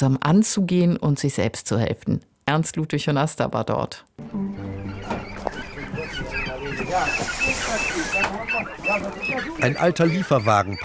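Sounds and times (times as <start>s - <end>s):
speech: 0.0s - 5.2s, 6.8s - 10.8s
chickens clucking in cages: 4.2s - 10.8s
ducks quacking in cages: 4.2s - 10.8s
geese honking in cages: 4.2s - 10.8s
murmuring voices: 4.8s - 10.8s.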